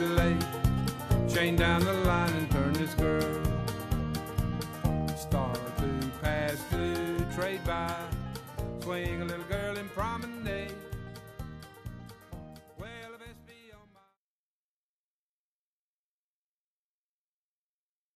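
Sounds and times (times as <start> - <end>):
square dance vocal: 0.0 - 11.4.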